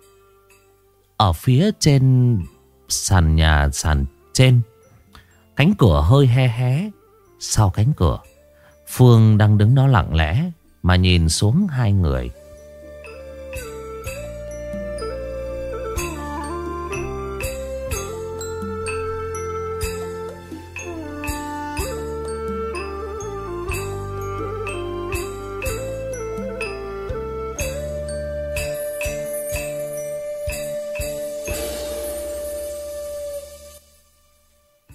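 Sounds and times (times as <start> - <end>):
low melodic backdrop: 0.0 - 34.9
speech: 1.2 - 4.7, 5.6 - 8.3, 8.9 - 12.4
wind chimes tinkling on a porch: 7.5 - 33.9.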